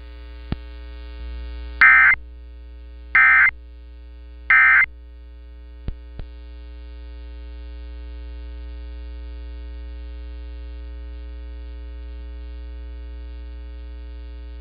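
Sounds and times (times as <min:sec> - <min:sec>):
emergency alert system test tone: 0:01.8 - 0:02.2, 0:03.2 - 0:03.5, 0:04.5 - 0:04.9.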